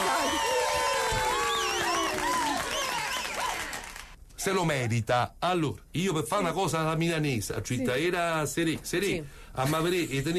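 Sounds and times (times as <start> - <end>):
applause sound effect of crowd clapping on an Italian radio show: 0.0 - 4.2
speech: 4.4 - 10.3.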